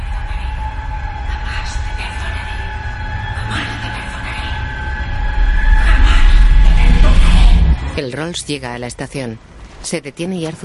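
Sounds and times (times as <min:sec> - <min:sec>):
thin high whining tones: 0:00.0 - 0:08.3
train at a railway station in a film: 0:00.0 - 0:08.5
speech: 0:08.0 - 0:10.6.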